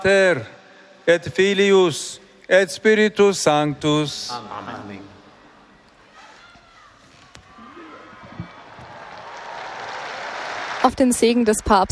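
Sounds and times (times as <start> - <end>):
speech: 0.0 - 5.1, 10.8 - 11.8
crowd applause in a large square: 7.6 - 11.5.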